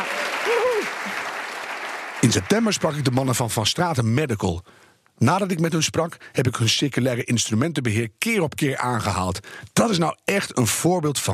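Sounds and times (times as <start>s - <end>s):
person cheering: 0.0s - 1.2s
crowd applauding: 0.0s - 3.3s
speech: 0.5s - 1.3s, 2.2s - 11.3s.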